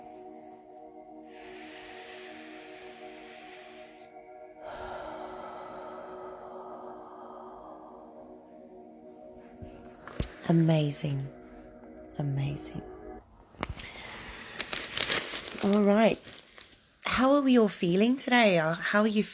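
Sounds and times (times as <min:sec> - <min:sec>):
low steady drone: 0:00.0 - 0:15.7
slow deep breath in and out: 0:00.1 - 0:10.0, 0:13.6 - 0:15.6
speech: 0:10.5 - 0:11.4, 0:12.2 - 0:12.9, 0:15.6 - 0:16.4, 0:17.2 - 0:19.3.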